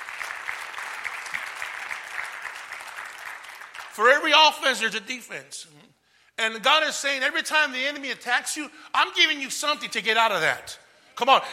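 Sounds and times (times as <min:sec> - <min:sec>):
audience applauding: 0:00.0 - 0:04.2
speech: 0:04.0 - 0:11.5.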